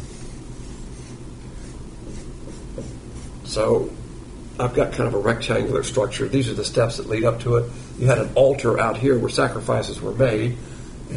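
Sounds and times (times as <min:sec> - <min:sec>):
scratchy rubbing of someone drawing on a board: 0:00.0 - 0:03.5
speech: 0:03.5 - 0:04.0, 0:04.6 - 0:11.1.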